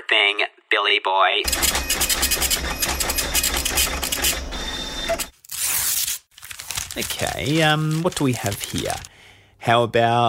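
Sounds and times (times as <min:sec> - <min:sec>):
speech: 0:00.4 - 0:02.6, 0:07.0 - 0:10.2
computer printer printing out a list: 0:01.4 - 0:05.3.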